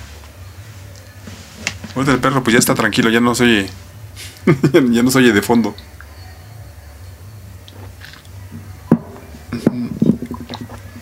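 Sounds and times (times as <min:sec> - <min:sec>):
low steady hum: 0:00.0 - 0:11.0
speech: 0:02.0 - 0:03.8, 0:04.4 - 0:05.9
person sipping and swallowing water: 0:09.6 - 0:11.0.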